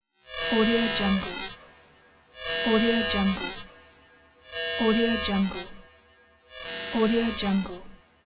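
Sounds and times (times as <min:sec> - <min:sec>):
spaceship alarm: 0:00.3 - 0:01.5, 0:02.4 - 0:03.7, 0:04.4 - 0:05.9, 0:06.5 - 0:08.0.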